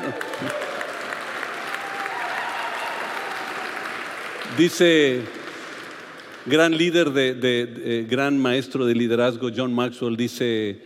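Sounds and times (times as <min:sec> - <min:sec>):
audience applause for fathers: 0:00.0 - 0:06.8
speech: 0:00.4 - 0:00.6, 0:04.5 - 0:05.4, 0:06.4 - 0:10.8.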